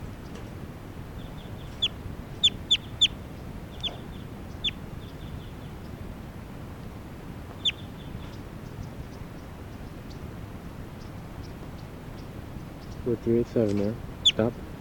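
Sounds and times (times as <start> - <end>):
crossbill bright clipped chip calls: 1.2 - 6.0, 7.5 - 10.3, 10.9 - 14.6
speech: 13.1 - 14.6.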